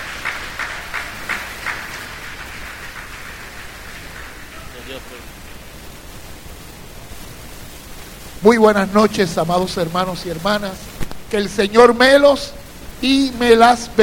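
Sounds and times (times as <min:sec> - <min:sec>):
crowd audience applause: 0:00.0 - 0:06.1
speech: 0:08.4 - 0:14.0.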